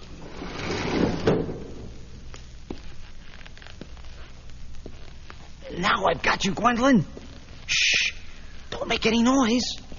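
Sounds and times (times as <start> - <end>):
window sliding open: 0.2 - 1.8
speech: 5.8 - 8.1, 8.9 - 9.8.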